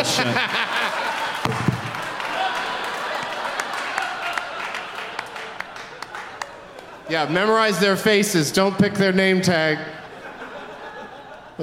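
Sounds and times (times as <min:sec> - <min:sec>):
speech: 0:00.0 - 0:00.8, 0:07.1 - 0:10.0
crowd applause: 0:00.0 - 0:07.3
laughter: 0:00.0 - 0:08.3, 0:09.5 - 0:11.6.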